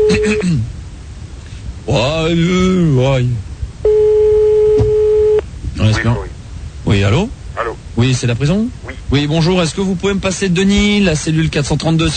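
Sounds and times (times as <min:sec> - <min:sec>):
telephone line tone during call: 0:00.0 - 0:00.4, 0:03.8 - 0:05.4
speech: 0:00.1 - 0:00.8, 0:01.8 - 0:04.0, 0:05.9 - 0:06.3, 0:06.9 - 0:12.1.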